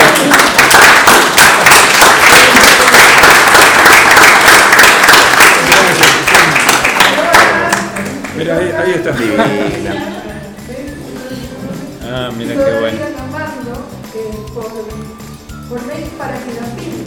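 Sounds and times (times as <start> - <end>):
audience applause: 0.0 - 8.5
speech: 9.0 - 10.2
laughter: 9.1 - 10.4.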